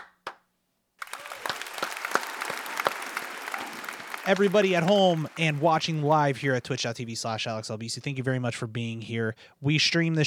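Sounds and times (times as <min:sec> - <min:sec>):
applause: 0:01.0 - 0:07.1
speech: 0:04.2 - 0:10.2.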